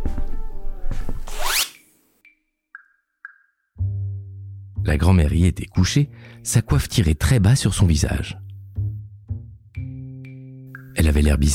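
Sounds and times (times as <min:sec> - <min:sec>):
bed curtains drawn with sliding fabric and rings: 0:01.2 - 0:01.9
short pinging tones: 0:01.8 - 0:03.7
speech: 0:04.8 - 0:08.4, 0:11.1 - 0:11.5.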